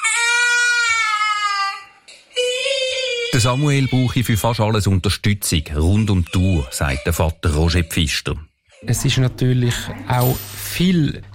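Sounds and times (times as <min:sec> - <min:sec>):
autistic boy screaming: 0:00.0 - 0:04.2
speech: 0:03.3 - 0:11.3.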